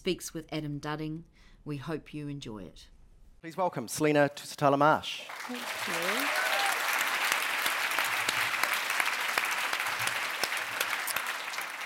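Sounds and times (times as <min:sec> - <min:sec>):
speech: 0:00.0 - 0:06.4
audience applause: 0:05.2 - 0:11.8.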